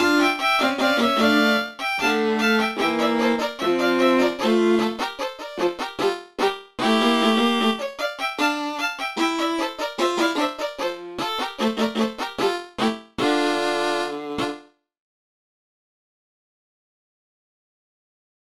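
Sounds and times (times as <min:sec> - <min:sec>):
four violins playing Scottish music: 0:00.0 - 0:14.6.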